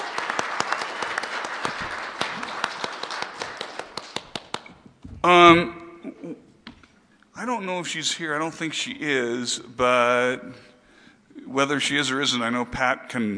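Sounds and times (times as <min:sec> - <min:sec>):
round of applause: 0:00.0 - 0:04.8
speech: 0:05.2 - 0:05.8, 0:07.4 - 0:10.7, 0:11.5 - 0:13.3.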